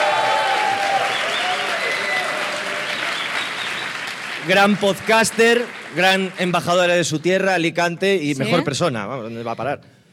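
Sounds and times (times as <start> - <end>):
audience applause: 0.0 - 7.2
speech: 4.5 - 10.0.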